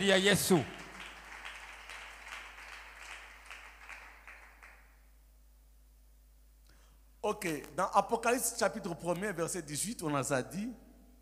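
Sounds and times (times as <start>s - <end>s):
speech: 0.0s - 0.8s, 7.2s - 10.8s
church congregation applauding during a service: 0.0s - 5.1s.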